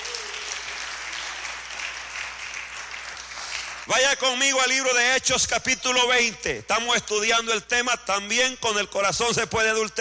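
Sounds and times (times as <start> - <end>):
audience applauding: 0.0 - 3.9
speech: 3.9 - 9.9.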